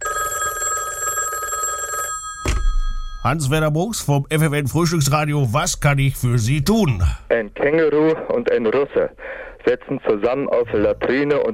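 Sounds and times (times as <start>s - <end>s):
telephone ringing: 0.0s - 3.8s
speech: 3.2s - 11.5s.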